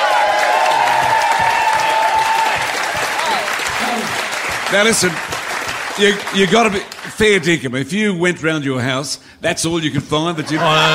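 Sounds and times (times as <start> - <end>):
audience applause and cheering: 0.0 - 7.4
speech: 4.7 - 5.4, 6.0 - 10.9.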